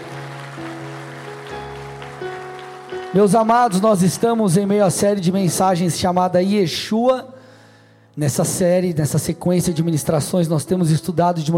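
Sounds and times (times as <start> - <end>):
audience applause: 0.0 - 5.2
speech: 3.1 - 7.3, 8.2 - 11.5.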